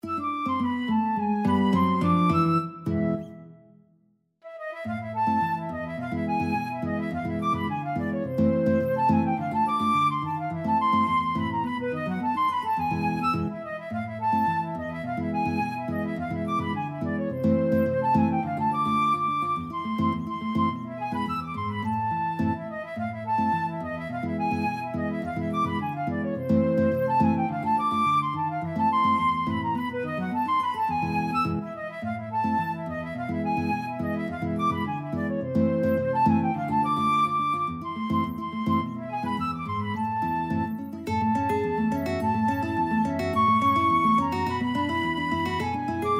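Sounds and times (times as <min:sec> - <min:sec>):
flute in a duet: 0:00.0 - 0:46.1
guitar in a duet: 0:00.0 - 0:46.1.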